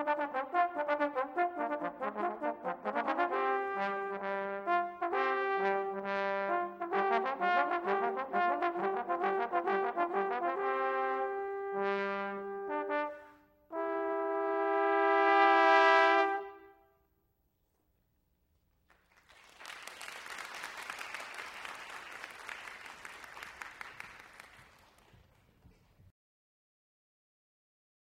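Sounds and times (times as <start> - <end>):
fanfare: 0.0 - 16.8.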